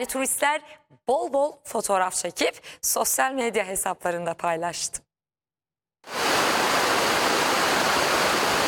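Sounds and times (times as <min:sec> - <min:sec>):
speech: 0:00.0 - 0:05.1
waterfall roaring among rocks, water at a record level: 0:06.1 - 0:08.6.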